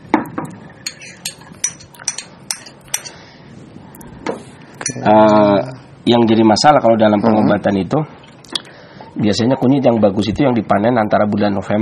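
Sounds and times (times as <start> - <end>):
low hiss: 0.0 - 11.8
utensil clinking against a cooking pot as turmeric is added: 0.8 - 3.2, 4.8 - 5.5
speech: 5.0 - 8.2, 9.2 - 11.8.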